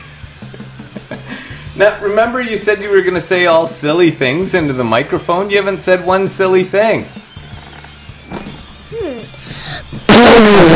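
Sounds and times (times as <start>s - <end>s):
speech: 1.1s - 7.2s
short squeaky fart: 7.4s - 10.7s
loud harsh burst of noise: 10.1s - 10.7s.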